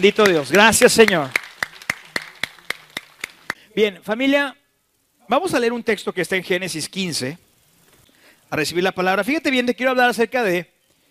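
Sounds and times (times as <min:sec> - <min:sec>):
speech: 0:00.0 - 0:01.4, 0:03.8 - 0:04.6, 0:05.3 - 0:07.4, 0:08.5 - 0:10.7
audience applause: 0:00.0 - 0:03.6.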